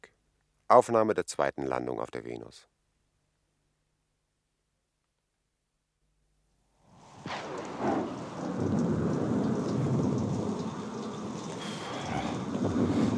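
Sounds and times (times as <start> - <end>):
speech: 0.7 - 2.7
heavy rain: 7.0 - 13.1
thunder: 7.2 - 13.1.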